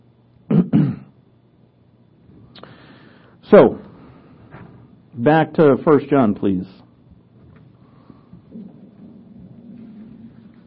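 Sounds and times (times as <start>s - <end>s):
speech: 3.5s - 3.8s, 5.2s - 6.8s
stomach growling: 7.4s - 10.6s.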